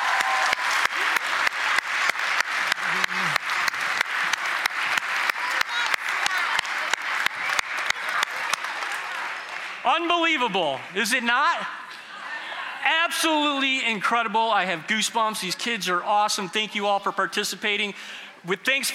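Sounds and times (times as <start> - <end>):
audience clapping: 0.0 - 11.0
speech: 10.0 - 11.8, 13.1 - 18.9.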